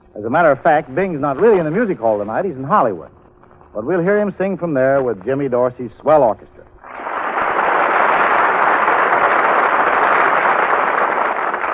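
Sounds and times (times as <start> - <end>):
speech: 0.2 - 6.5
applause: 6.8 - 11.7.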